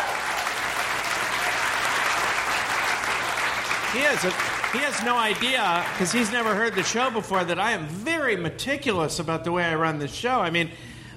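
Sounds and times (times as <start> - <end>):
audience applause: 0.0 - 7.5
speech: 3.9 - 10.9.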